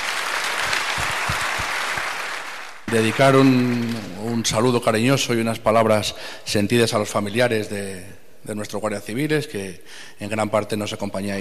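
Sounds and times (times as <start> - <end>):
audience at a municipal ceremony applauding the Guardia Civil of Guijuelo: 0.0 - 4.5
speech: 2.9 - 11.3.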